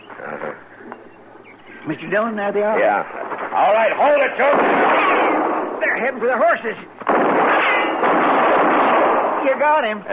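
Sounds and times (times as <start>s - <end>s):
speech: 1.9s - 7.0s, 9.4s - 10.1s
gunshot: 4.4s - 5.8s, 7.0s - 9.6s.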